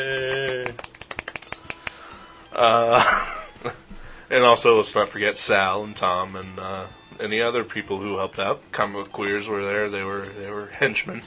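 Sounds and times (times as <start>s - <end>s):
soft golf clap: 0.0s - 2.2s
speech: 2.6s - 11.2s.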